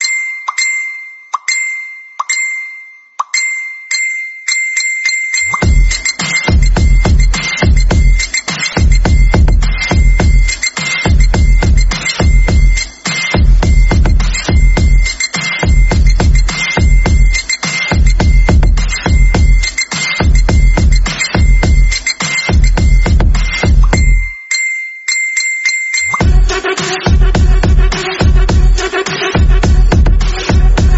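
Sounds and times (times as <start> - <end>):
remix ringtone: 0.0 - 30.9.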